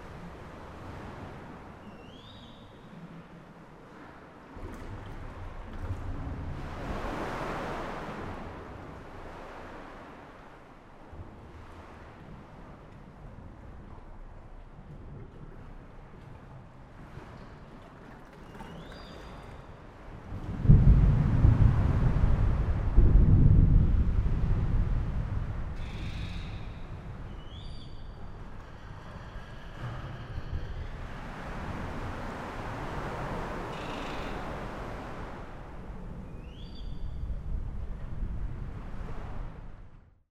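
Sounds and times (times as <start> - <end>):
sea cave ambience: 0.0 - 40.2.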